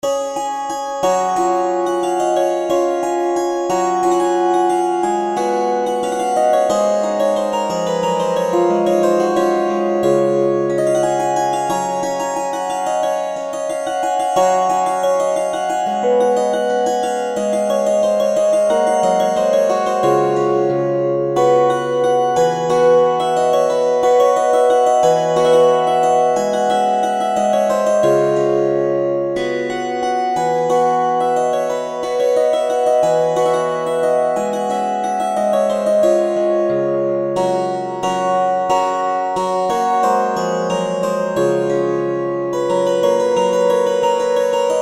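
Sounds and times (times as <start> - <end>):
zither: 0.0 - 44.8.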